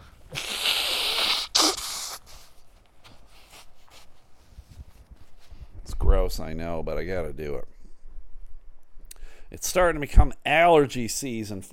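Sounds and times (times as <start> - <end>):
nose blowing: 0.0 - 2.6
speech: 6.3 - 7.8, 9.5 - 11.7.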